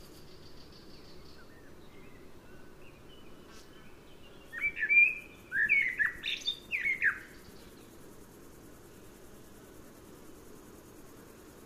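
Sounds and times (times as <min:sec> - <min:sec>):
common blackbird fluty song: 0:00.2 - 0:07.9.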